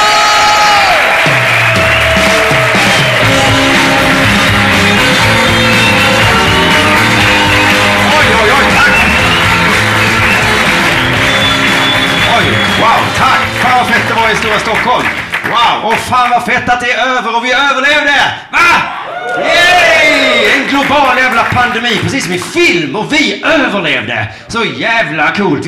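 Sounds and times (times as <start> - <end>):
audience applause: 0.0 - 16.1, 19.1 - 22.6
speech: 16.1 - 18.7, 21.0 - 25.6.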